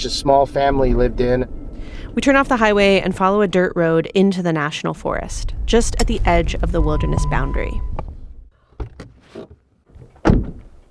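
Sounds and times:
speech: 0:00.0 - 0:08.0
car door slamming shut: 0:10.2 - 0:10.7.

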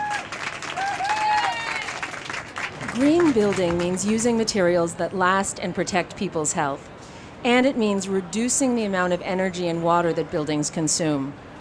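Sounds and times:
crowd clapping at a green building event at Soma Street Food Park San Francisco: 0:00.0 - 0:04.4
speech: 0:03.0 - 0:11.5.

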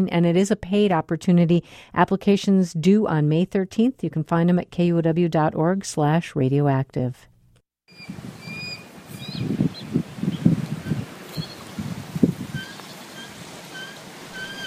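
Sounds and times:
speech: 0:00.0 - 0:07.3, 0:07.9 - 0:08.4, 0:09.4 - 0:09.7
two adult bald eagles and a juvenile calling on an old pier: 0:07.9 - 0:14.6.

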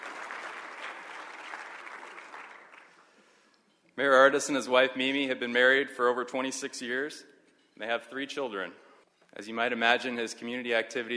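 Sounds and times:
steady applause from a crowd: 0:00.0 - 0:03.1
speech: 0:04.0 - 0:11.1.

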